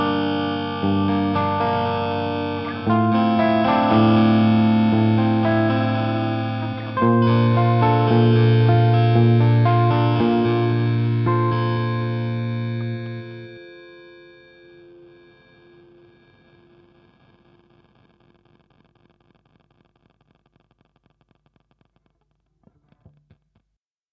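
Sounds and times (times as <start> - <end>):
lo-fi music: 0.0 - 16.2.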